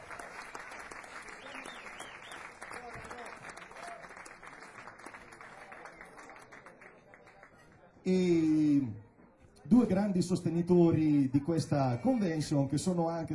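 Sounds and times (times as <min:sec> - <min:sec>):
audience applause: 0:00.0 - 0:07.6
speech: 0:08.1 - 0:09.0, 0:09.8 - 0:13.3.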